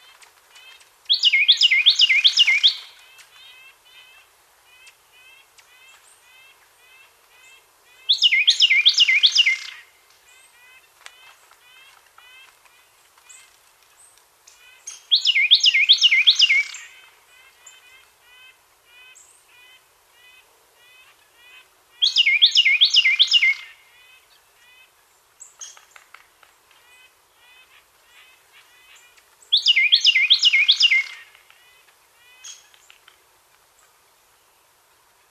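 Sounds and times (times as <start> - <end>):
Carolina Wren Thryothorus ludovicianus: 0.6 - 9.8, 14.6 - 17.0, 22.0 - 23.7, 28.8 - 31.3.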